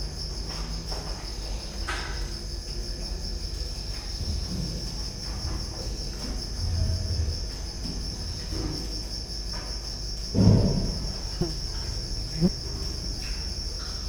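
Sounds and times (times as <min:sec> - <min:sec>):
cricket trilling: 0:00.0 - 0:14.0.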